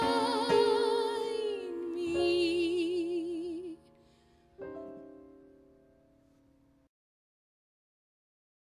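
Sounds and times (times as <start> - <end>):
French singer singing: 0.0 - 3.9.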